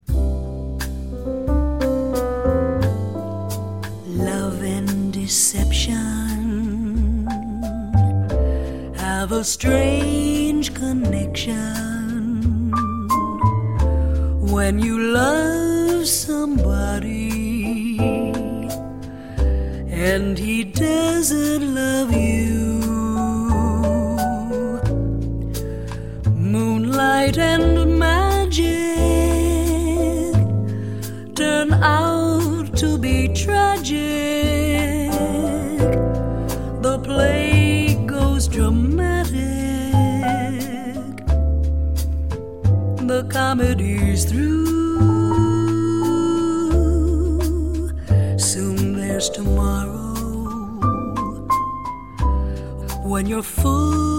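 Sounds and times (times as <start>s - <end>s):
bossa nova music: 0.0s - 54.1s.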